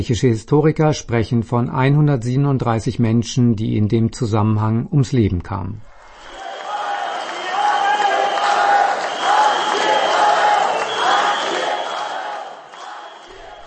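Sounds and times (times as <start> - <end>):
speech: 0.0 - 5.9
spectators booing: 5.9 - 13.6.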